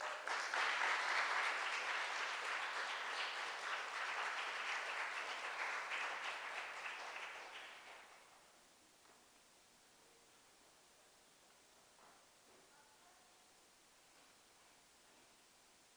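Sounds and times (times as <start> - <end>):
congregation applause welcoming a guest preacher at a church service: 0.0 - 8.4.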